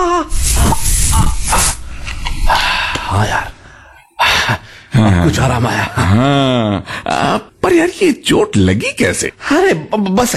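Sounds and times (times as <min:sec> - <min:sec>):
pain relief aerosol spray hissing: 0:00.3 - 0:03.2
speech: 0:05.3 - 0:10.3.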